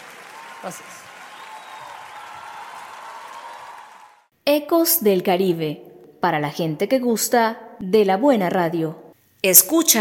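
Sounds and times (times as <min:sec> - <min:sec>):
audience applause: 0:00.0 - 0:04.3
speech: 0:00.6 - 0:01.1, 0:04.5 - 0:09.9.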